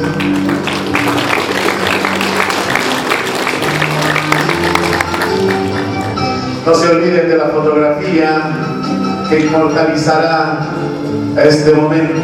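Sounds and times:
audience applauding at a school graduation ceremony: 0.0s - 6.3s
speech: 6.7s - 8.7s, 9.3s - 12.2s.

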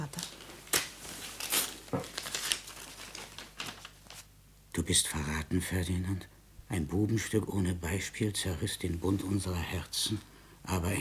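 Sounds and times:
sealed letter being broken open: 0.1s - 4.3s
speech: 4.8s - 10.9s.

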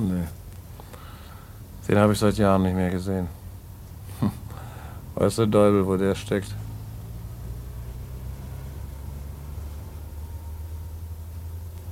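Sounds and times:
speech: 0.0s - 0.4s, 1.9s - 3.4s, 4.2s - 4.4s, 5.2s - 6.6s
cars driving past outside: 5.9s - 11.9s.

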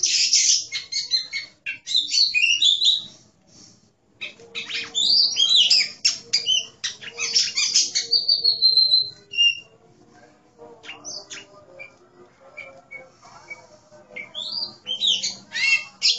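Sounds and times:
Oriental magpie-robin pouring out fast varied chattering song: 0.0s - 3.1s, 4.2s - 9.6s, 14.2s - 16.1s.

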